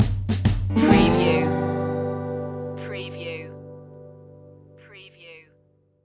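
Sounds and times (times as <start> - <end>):
blues music stinger: 0.7 - 4.8.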